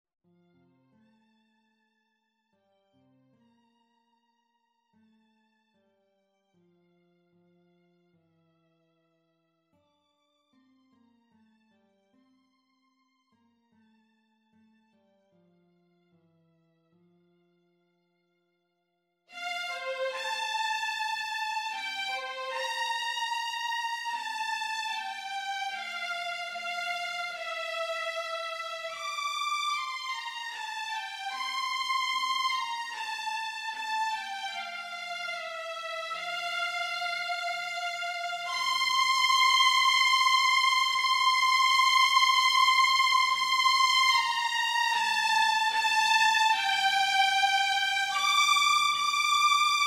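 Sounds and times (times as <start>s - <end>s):
second violin part: 19.3s - 49.8s.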